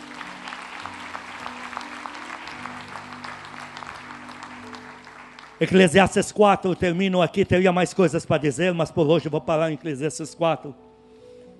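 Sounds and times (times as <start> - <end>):
crowd audience applauding: 0.0 - 6.8
speech: 5.6 - 10.8.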